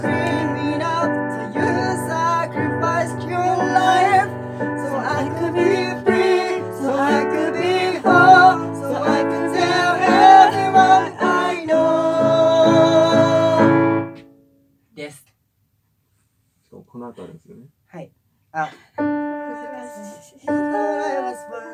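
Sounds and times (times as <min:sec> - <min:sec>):
men singing soprano: 0:00.0 - 0:14.0, 0:19.5 - 0:21.7.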